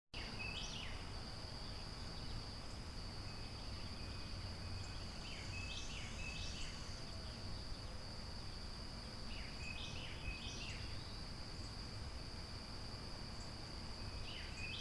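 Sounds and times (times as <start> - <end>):
outdoor ambience: 0.2 - 14.7.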